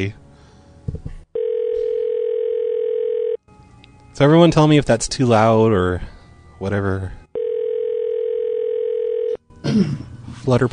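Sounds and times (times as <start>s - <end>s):
speech: 0.0s - 0.2s, 4.2s - 7.2s, 9.6s - 10.7s
phone call ringback tone: 1.4s - 3.4s, 7.4s - 9.4s.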